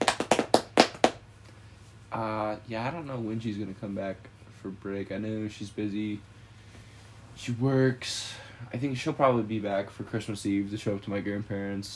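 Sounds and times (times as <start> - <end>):
hands clapping briskly: 0.0 - 1.2
speech: 2.2 - 6.3, 7.4 - 11.9.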